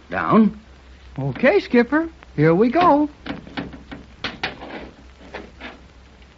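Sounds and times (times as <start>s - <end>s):
speech: 0.1s - 0.6s, 1.2s - 3.2s
stuck door grinding and scraping as it slides downward: 2.8s - 5.9s.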